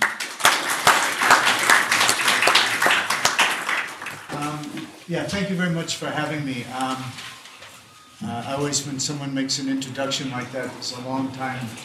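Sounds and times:
audience applause welcoming a speaker at a Canberra talk on the World Bank: 0.0 - 4.7
speech: 5.1 - 7.4, 8.2 - 11.8.

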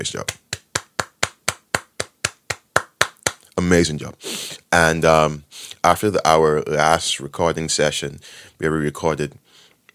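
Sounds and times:
speech: 0.0 - 0.4, 3.6 - 9.4
people clapping hands: 0.0 - 3.5.

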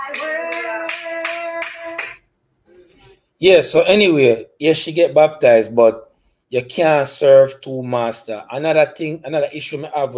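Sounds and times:
audience clapping hands: 0.0 - 2.3
speech: 0.1 - 0.4, 3.4 - 10.1.

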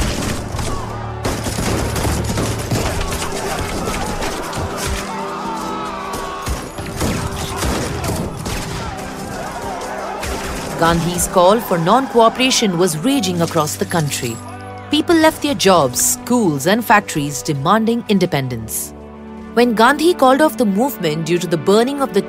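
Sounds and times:
gunfire volley in a Jallianwala Bagh massacre reenactment: 0.0 - 5.0, 6.4 - 10.9
speech: 10.8 - 19.0, 19.6 - 22.2.

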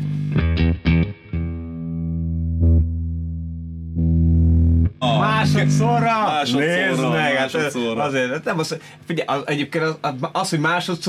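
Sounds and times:
electric guitar through a switched-on overdrive pedal: 0.0 - 6.5
speech: 5.6 - 11.0.

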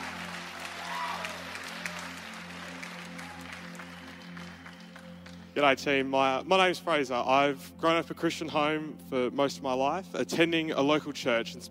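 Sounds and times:
congregation applauding to welcome a speaker at a church baptism service: 0.0 - 5.6
speech: 5.6 - 11.6.

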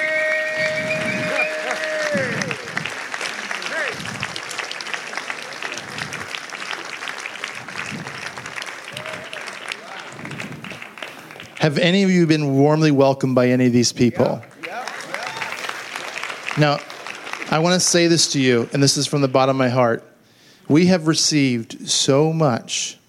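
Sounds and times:
audience applause welcoming a host team: 0.0 - 12.0, 14.4 - 19.6
speech: 11.7 - 14.5, 16.6 - 16.9, 17.5 - 20.1, 20.7 - 23.0.

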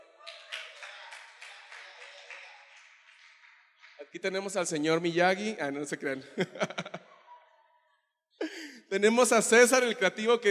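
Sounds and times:
applause: 0.0 - 4.5
speech: 4.0 - 6.8, 9.0 - 10.4
laughter: 6.1 - 8.8.

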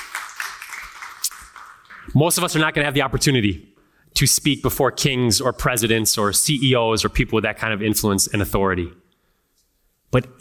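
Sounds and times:
audience clapping: 0.0 - 2.6
speech: 2.1 - 9.0, 10.1 - 10.3.

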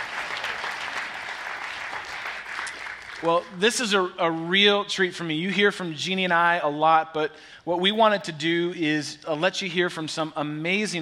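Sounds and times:
audience clapping to welcome a panel at a church weekend event: 0.0 - 3.6
speech: 3.2 - 11.0.

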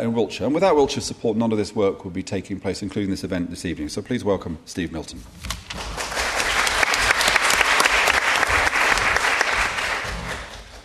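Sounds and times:
speech: 0.1 - 6.0
audience applause: 5.8 - 10.8.

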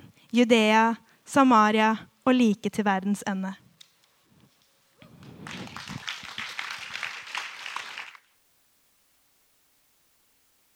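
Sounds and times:
speech: 0.3 - 3.6
audience clapping: 5.1 - 8.3.

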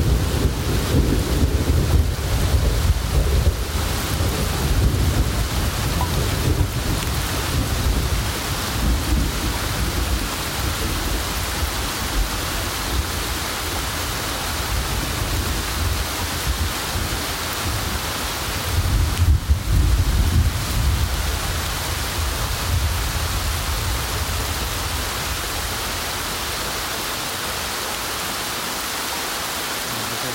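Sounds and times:
low rolling thunder: 0.0 - 13.4, 18.6 - 25.7
steady rain in a thunderstorm: 0.0 - 30.3.

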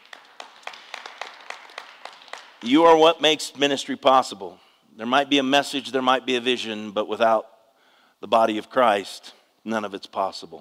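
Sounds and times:
audience clapping in rhythm: 0.0 - 3.4
speech: 2.6 - 7.5, 8.2 - 10.5.

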